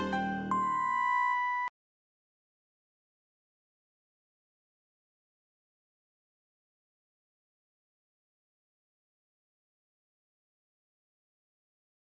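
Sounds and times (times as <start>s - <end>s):
bleep: 0.2s - 1.7s.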